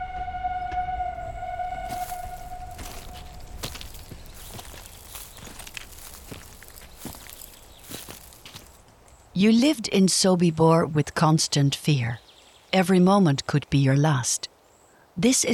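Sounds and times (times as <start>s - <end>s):
steam train whistle: 0.0s - 4.0s
speech: 9.4s - 14.5s, 15.2s - 15.5s.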